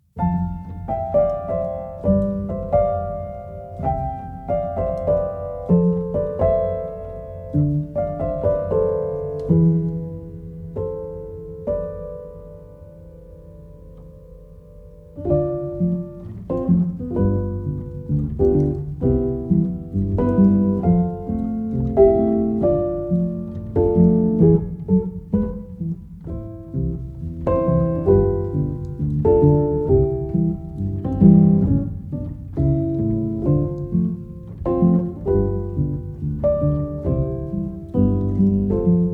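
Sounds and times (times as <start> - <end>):
piano: 0.0 - 39.1.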